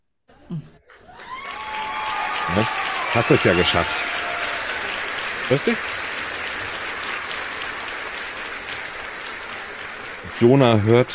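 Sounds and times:
speech: 0:00.5 - 0:00.8, 0:02.5 - 0:04.1, 0:05.5 - 0:05.9, 0:10.4 - 0:11.1
applause: 0:00.8 - 0:11.1.

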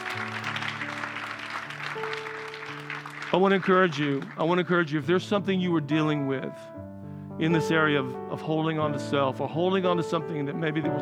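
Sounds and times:
audience clapping: 0:00.0 - 0:04.9
speech: 0:03.3 - 0:10.9.

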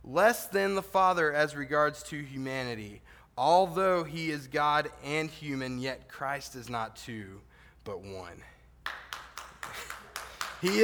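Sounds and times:
speech: 0:00.1 - 0:08.5, 0:10.6 - 0:10.8
audience applause: 0:08.9 - 0:10.8.

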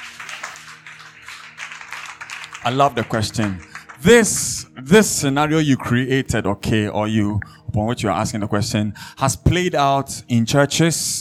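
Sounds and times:
audience clapping: 0:00.0 - 0:04.8
speech: 0:02.6 - 0:11.2.

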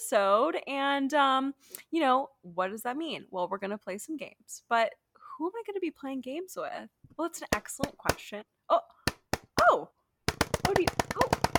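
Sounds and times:
speech: 0:00.0 - 0:09.0, 0:09.6 - 0:10.0, 0:10.7 - 0:11.4
knocking on a door: 0:10.3 - 0:11.5.

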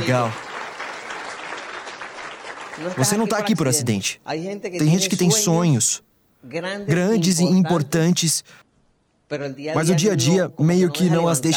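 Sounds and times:
speech: 0:00.0 - 0:00.4, 0:02.8 - 0:08.6, 0:09.3 - 0:11.5
audience applause: 0:00.0 - 0:04.0.

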